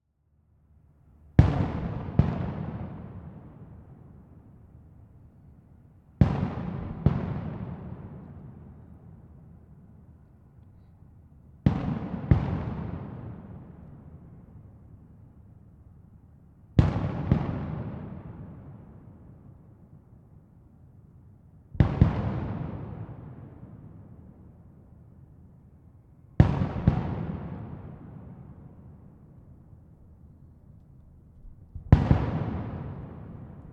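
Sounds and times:
fireworks: 1.4s - 4.4s, 6.2s - 9.8s, 11.6s - 15.2s, 16.8s - 19.8s, 21.8s - 24.7s, 26.3s - 29.4s, 31.7s - 33.7s.

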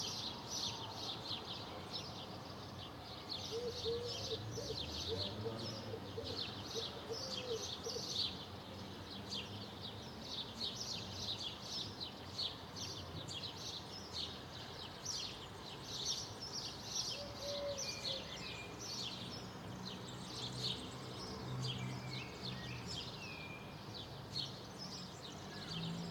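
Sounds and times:
birds in a residential area in the afternoon: 0.0s - 26.0s.

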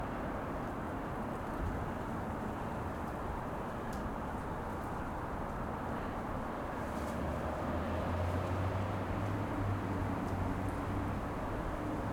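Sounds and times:
wind on a quiet street: 0.0s - 12.0s.

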